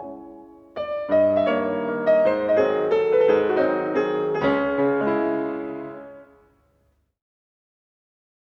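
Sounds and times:
piano mazurka in C sharp minor: 0.0s - 6.7s.

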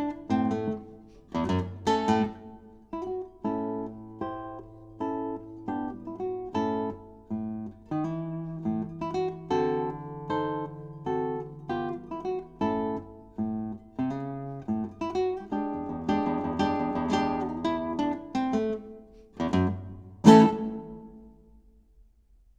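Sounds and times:
blues on classical Spanish guitar: 0.0s - 21.7s.

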